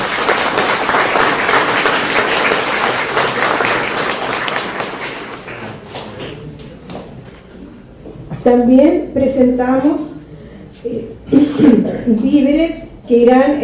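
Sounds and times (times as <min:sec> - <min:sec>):
audience applause: 0:00.0 - 0:06.5
speech: 0:08.5 - 0:10.1, 0:10.8 - 0:13.6.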